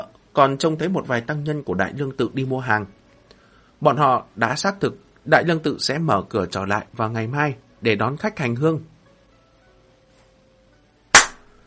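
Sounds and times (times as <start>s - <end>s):
speech: 0.4s - 3.0s, 3.8s - 8.9s
hard hand slap: 11.2s - 11.5s.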